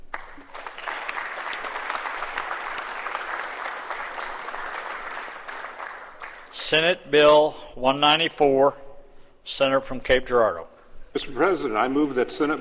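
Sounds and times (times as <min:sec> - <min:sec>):
applause in the Missouri Senate chamber welcoming visiting guests: 0:00.0 - 0:06.8
speech: 0:06.6 - 0:08.8, 0:09.5 - 0:12.6.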